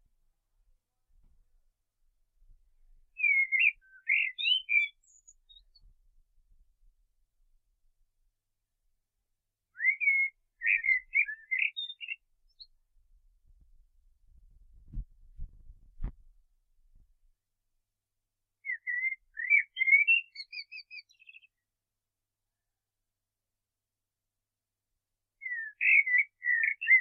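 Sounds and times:
common blackbird singing: 3.2s - 5.8s, 9.8s - 12.7s, 18.6s - 21.6s, 25.4s - 26.9s.

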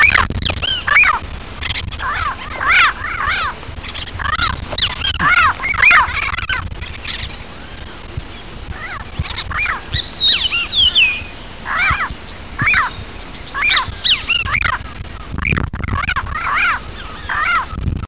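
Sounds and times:
bird calls of harmonic squawks: 0.0s - 17.8s.

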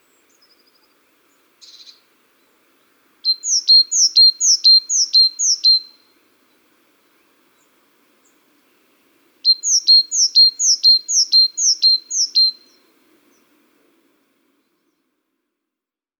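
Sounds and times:
great tit singing: 3.3s - 6.0s, 9.4s - 13.5s.

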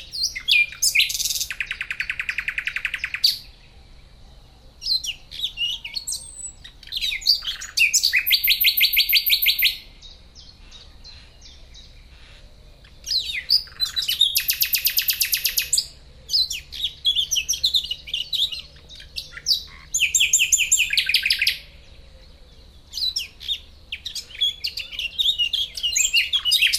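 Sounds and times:
common nightingale song of trills and whistles: 0.0s - 26.7s.

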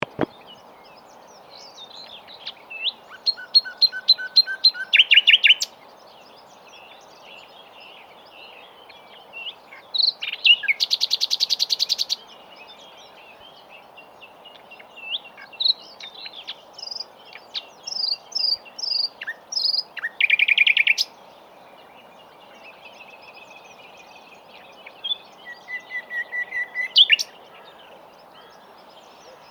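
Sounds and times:
common nightingale song: 0.0s - 29.4s.

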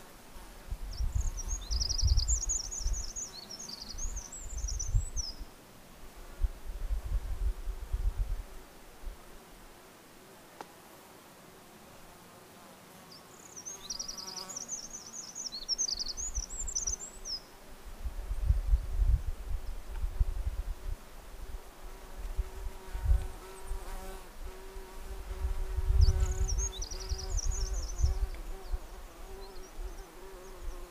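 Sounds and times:
wind noise: 0.6s - 3.2s, 4.0s - 5.5s, 6.2s - 9.2s, 17.8s - 29.0s
Eurasian wren trilling song: 0.9s - 5.4s, 13.1s - 17.5s, 26.0s - 30.8s.

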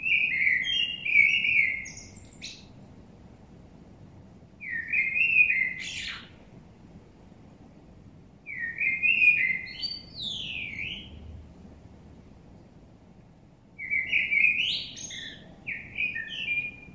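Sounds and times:
common blackbird Turdus merula song: 0.0s - 2.8s, 4.6s - 6.4s, 8.5s - 11.4s, 13.8s - 16.9s.

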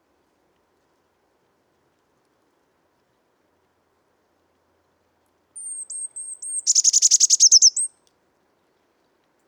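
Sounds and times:
Eurasian blue tit whistling: 5.6s - 7.9s.

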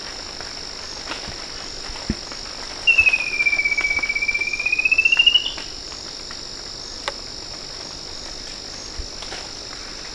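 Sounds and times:
high-pitched hiss: 0.0s - 10.1s
bird whistled trill: 2.9s - 5.7s.

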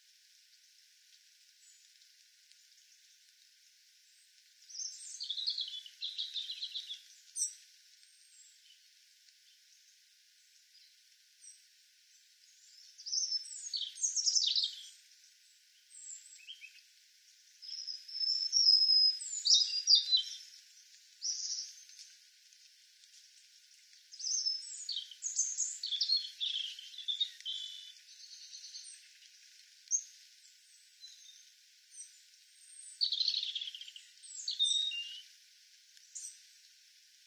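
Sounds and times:
European robin song of high twittering and thin whistles: 4.7s - 7.6s, 12.6s - 15.0s, 17.6s - 22.0s, 24.1s - 29.3s, 29.9s - 35.3s.

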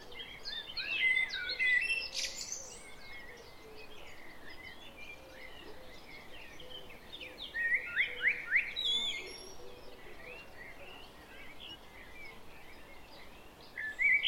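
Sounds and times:
common blackbird warbled song: 0.0s - 14.2s.

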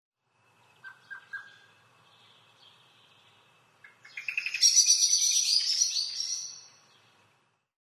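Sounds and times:
Eurasian blackbird calling: 0.7s - 7.1s.

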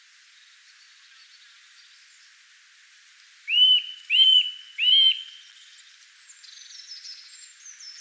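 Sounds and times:
Eurasian nuthatch Sitta europaea giving rising-falling whistled calls: 3.5s - 5.4s.

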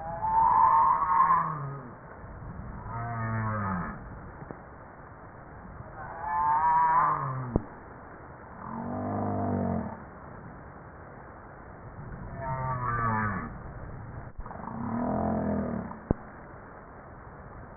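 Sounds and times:
humpback whale harmonic moans: 0.0s - 2.0s, 2.8s - 4.0s, 6.0s - 7.7s, 8.6s - 10.0s, 12.3s - 13.6s, 14.5s - 16.2s.

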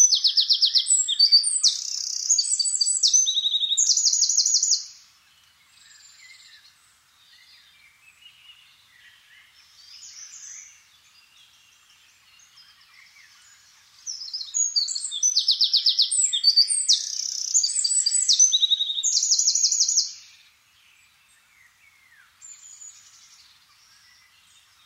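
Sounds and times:
Eurasian wren song of fast trills: 0.0s - 24.8s.

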